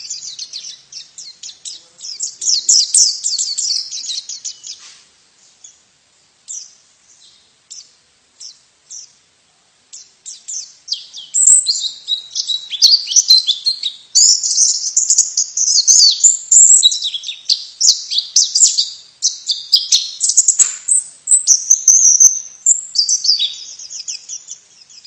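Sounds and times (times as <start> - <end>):
white-eye twittering: 0.0 - 4.8, 9.9 - 25.0.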